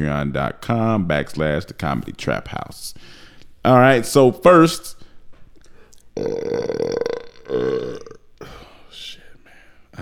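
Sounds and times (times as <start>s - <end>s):
speech: 0.0s - 5.0s, 6.2s - 8.1s
loud burp: 6.2s - 8.5s.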